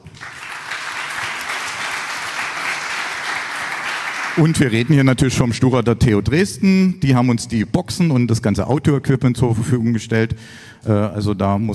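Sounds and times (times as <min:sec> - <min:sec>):
audience applause: 0:00.0 - 0:05.1
speech: 0:04.4 - 0:11.7.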